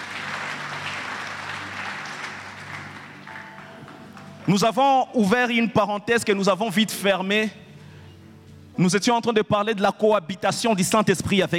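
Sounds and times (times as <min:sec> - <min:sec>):
church congregation applauding after a scripture reading: 0:00.0 - 0:05.6
speech: 0:04.5 - 0:07.6, 0:08.8 - 0:11.5.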